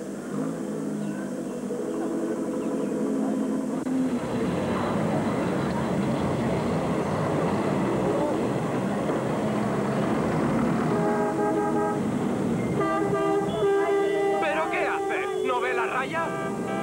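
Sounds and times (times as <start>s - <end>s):
traffic rumble: 0.0s - 16.8s
car horns honking: 4.0s - 16.8s.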